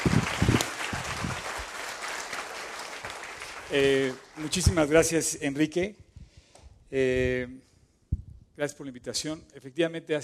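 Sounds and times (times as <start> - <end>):
applause: 0.0 - 5.2
speech: 3.7 - 6.0, 6.9 - 7.7, 8.6 - 10.2.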